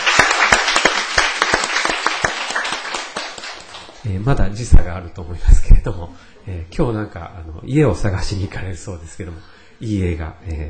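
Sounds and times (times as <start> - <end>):
audience applauding: 0.0 - 4.0
speech: 4.0 - 10.6.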